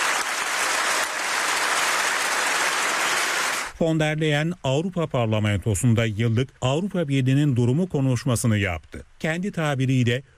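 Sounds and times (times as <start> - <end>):
standing ovation in the European Parliament plenary chamber for Mark Carney: 0.0 - 3.8
speech: 3.8 - 10.3.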